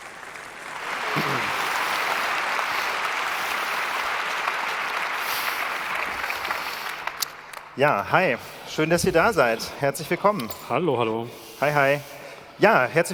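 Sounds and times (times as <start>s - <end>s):
audience applause: 0.0s - 7.8s
speech: 7.8s - 13.1s.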